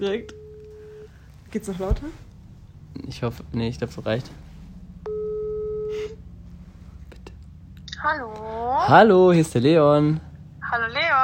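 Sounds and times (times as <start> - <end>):
speech: 0.0 - 0.4, 1.5 - 2.3, 2.9 - 4.4, 8.0 - 11.2
faint low hum: 0.0 - 11.2
telephone ringback tone during outgoing call: 0.2 - 1.1, 5.0 - 6.2.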